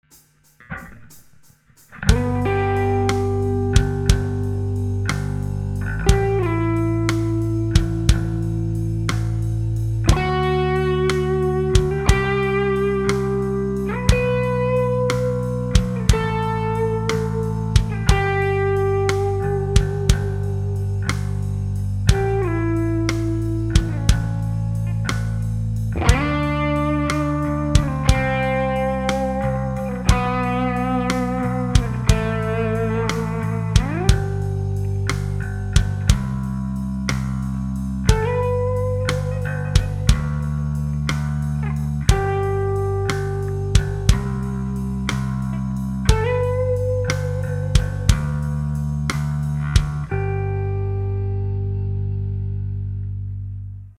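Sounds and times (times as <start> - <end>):
backing track: 0.0 - 53.0.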